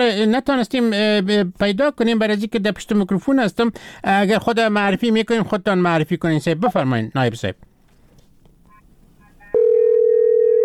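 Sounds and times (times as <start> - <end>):
speech: 0.0 - 7.7
telephone line trouble tone on a call to a radio program: 9.4 - 10.6.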